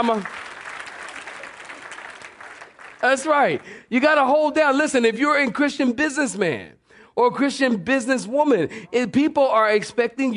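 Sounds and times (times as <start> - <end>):
speech: 0.0 - 0.4, 3.0 - 10.3
audience clapping hands: 0.0 - 3.8.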